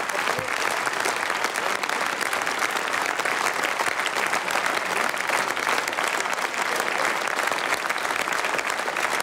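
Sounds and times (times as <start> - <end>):
audience applauding: 0.0 - 9.2.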